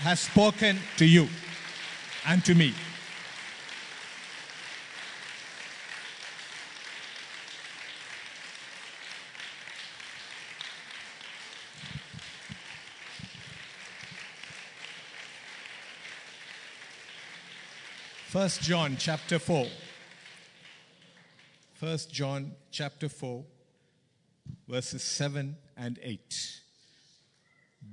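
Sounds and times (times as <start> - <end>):
speech: 0.0 - 1.4, 2.2 - 2.9, 18.4 - 19.8, 21.8 - 23.6, 24.7 - 26.6
audience clapping: 0.0 - 21.8.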